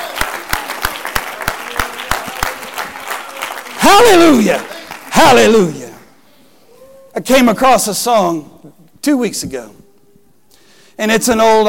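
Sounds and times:
audience clapping hands: 0:00.0 - 0:05.8
speech: 0:03.9 - 0:05.8, 0:07.2 - 0:09.8, 0:11.0 - 0:11.6.

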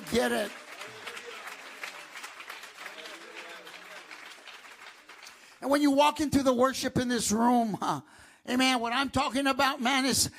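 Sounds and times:
crowd clapping: 0:00.0 - 0:05.9
speech: 0:00.1 - 0:00.6, 0:05.6 - 0:10.3.

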